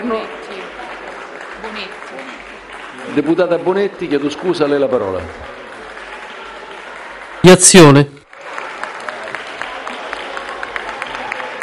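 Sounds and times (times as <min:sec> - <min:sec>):
applause in a parliamentary chamber: 0:00.0 - 0:11.6
speech: 0:00.1 - 0:00.4, 0:03.2 - 0:05.5, 0:07.4 - 0:08.1.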